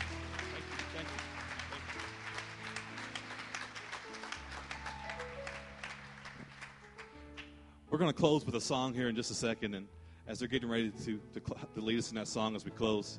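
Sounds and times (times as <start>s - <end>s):
audience clapping: 0.0s - 7.6s
speech: 7.9s - 13.1s.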